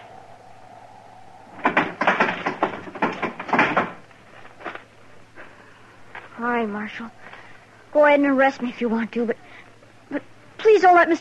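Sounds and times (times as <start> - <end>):
faint low hum: 0.0 - 10.7
heavy wooden barn door dragged open: 1.5 - 4.0
speech: 6.5 - 9.4, 10.1 - 11.1.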